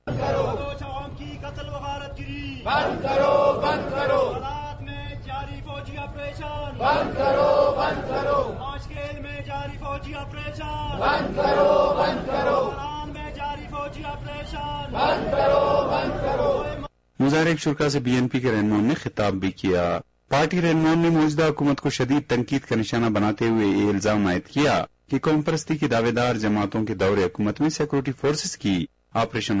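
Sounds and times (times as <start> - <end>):
BNP protesters chanting slogans outside the Quetta Press Club: 0.0 - 16.9
speech: 2.2 - 4.5, 17.3 - 29.5.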